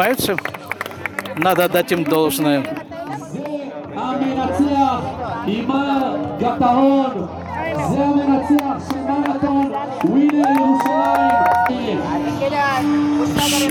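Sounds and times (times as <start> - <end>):
speech: 0.0 - 0.8, 1.4 - 3.4, 4.0 - 13.6
marathon spectators clapping: 0.0 - 3.6, 8.6 - 11.8
marathon spectators cheering: 10.0 - 11.8.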